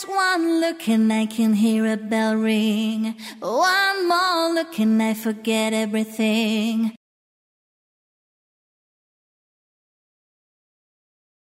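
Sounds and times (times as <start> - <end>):
woman singing lead vocal: 0.0 - 7.0.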